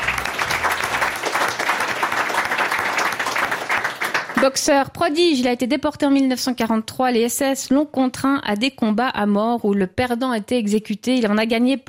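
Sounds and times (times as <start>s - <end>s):
audience applause: 0.0s - 4.5s
speech: 4.4s - 11.8s.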